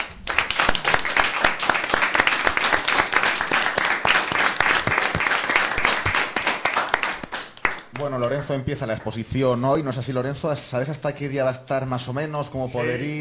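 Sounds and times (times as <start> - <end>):
group applauding: 0.0 - 8.4
speech: 8.5 - 13.1.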